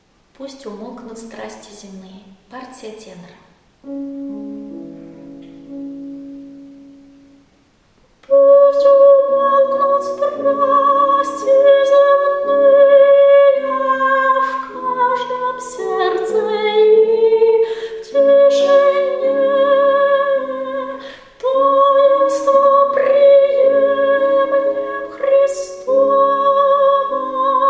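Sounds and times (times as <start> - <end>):
tenor singing: 8.2 - 27.6.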